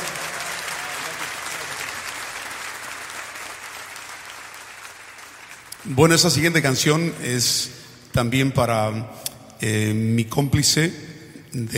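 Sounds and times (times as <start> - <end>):
concert audience applause between songs: 0.0 - 6.4
speech: 5.8 - 11.7.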